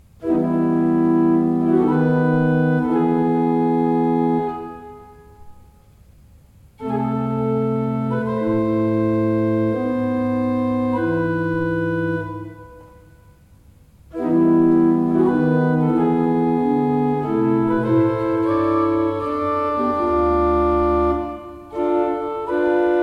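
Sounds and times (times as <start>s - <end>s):
pipe organ: 0.1s - 5.9s, 6.8s - 23.0s.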